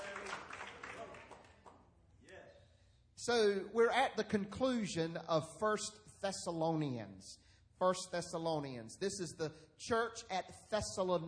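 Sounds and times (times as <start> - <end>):
audience clapping hands: 0.0 - 1.8
speech: 3.2 - 11.2.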